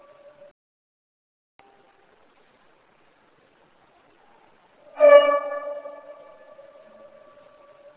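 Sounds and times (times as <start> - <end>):
trumpet: 4.9 - 7.9.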